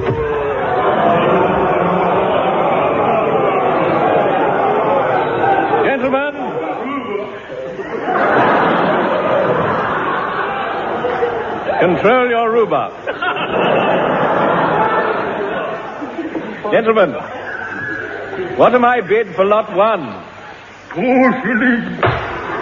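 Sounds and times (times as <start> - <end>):
people chuckling: 0.0 - 12.1, 12.9 - 18.6
dense crowd chattering and murmuring: 0.0 - 22.5
speech: 11.9 - 14.0, 16.7 - 17.3, 18.6 - 20.3, 21.0 - 22.0.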